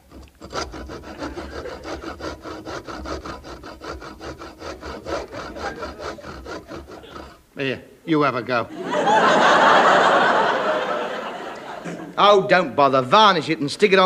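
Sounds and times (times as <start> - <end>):
sawing through wood: 0.0 - 7.5
laughter: 5.1 - 7.2, 8.7 - 12.2
speech: 7.6 - 10.1, 12.2 - 14.0.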